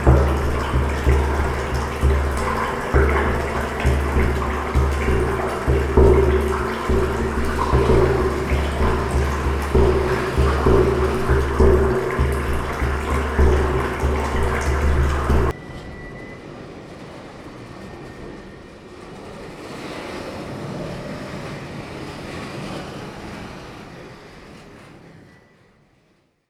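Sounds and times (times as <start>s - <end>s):
soundscape: 0.0s - 15.6s.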